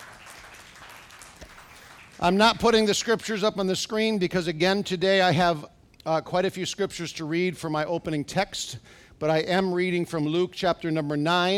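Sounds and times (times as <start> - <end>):
crowd clapping: 0.0 - 3.4
speech: 2.2 - 11.5.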